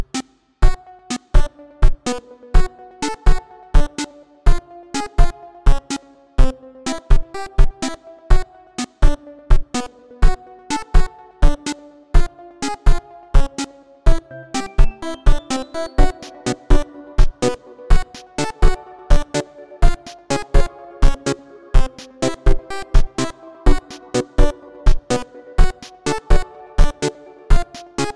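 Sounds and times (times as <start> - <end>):
main menu music: 0.7 - 28.1.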